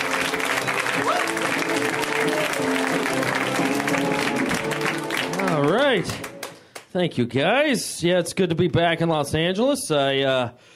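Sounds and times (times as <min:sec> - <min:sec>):
audience applause: 0:00.0 - 0:06.9
speech: 0:01.3 - 0:04.1, 0:05.6 - 0:06.3, 0:06.9 - 0:10.7.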